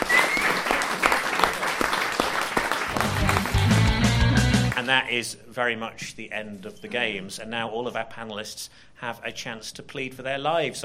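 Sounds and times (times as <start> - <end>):
crowd applauding: 0.0 - 4.9
speech: 4.9 - 10.8.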